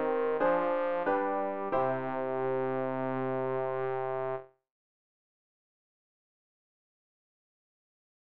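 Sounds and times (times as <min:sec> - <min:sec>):
bass: 0:00.0 - 0:04.4.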